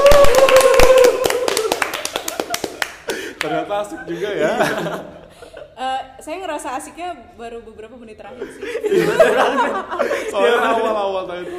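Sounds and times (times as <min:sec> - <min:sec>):
podcast hosts clapping for themselves: 0:00.0 - 0:03.9
laughter: 0:01.3 - 0:05.7, 0:08.4 - 0:11.5
speech: 0:03.8 - 0:05.2, 0:05.8 - 0:11.5.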